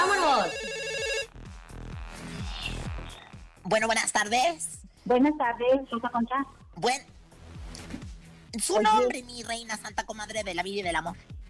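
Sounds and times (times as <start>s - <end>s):
telephone ringing for incoming call: 0.0s - 1.3s
speech: 3.7s - 7.2s, 8.5s - 11.3s.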